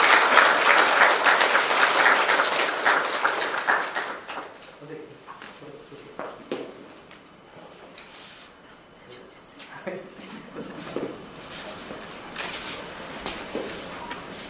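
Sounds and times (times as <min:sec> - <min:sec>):
audience applauding in welcome: 0:00.0 - 0:04.6.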